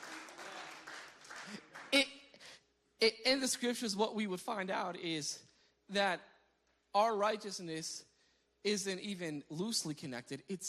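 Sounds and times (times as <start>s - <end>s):
audience clapping: 0.0s - 2.1s
speech: 1.5s - 2.2s, 3.0s - 6.3s, 6.9s - 10.6s.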